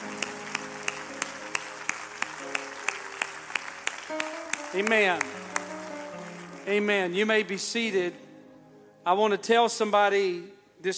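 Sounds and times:
audience clapping in rhythm: 0.0s - 7.5s
sustained musical notes: 0.0s - 9.2s
speech: 4.7s - 5.4s, 6.6s - 8.2s, 9.0s - 10.9s.

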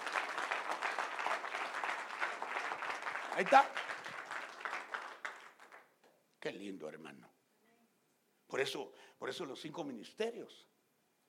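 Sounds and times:
audience applauding: 0.0s - 6.0s
speech: 3.4s - 3.8s, 6.4s - 7.4s, 8.5s - 10.7s.

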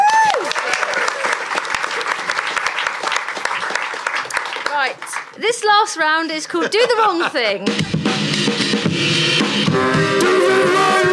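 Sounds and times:
whoop: 0.0s - 1.2s
audience clapping: 0.0s - 6.7s
speech: 5.4s - 11.0s
laughter: 6.2s - 8.0s.

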